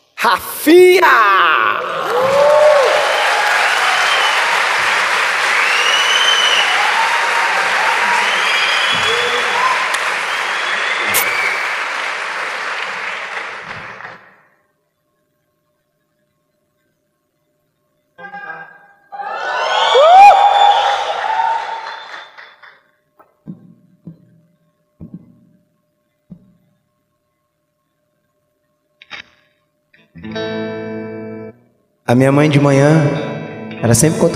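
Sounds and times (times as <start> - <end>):
speech: 0.2 - 2.3, 32.1 - 33.2, 33.8 - 34.3
audience applause and cheering: 1.4 - 14.4, 19.1 - 22.8.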